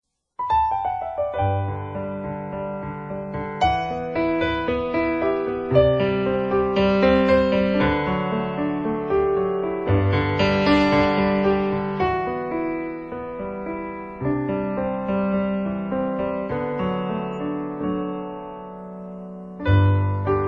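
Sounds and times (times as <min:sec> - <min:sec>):
piano: 0:00.1 - 0:20.4.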